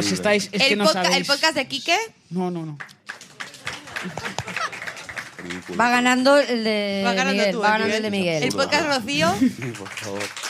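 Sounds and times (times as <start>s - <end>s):
speech: 0.0s - 3.0s, 4.0s - 4.4s, 5.4s - 10.4s
audience applause: 3.0s - 6.2s, 8.8s - 10.4s
laughter: 3.6s - 5.8s, 8.5s - 10.3s.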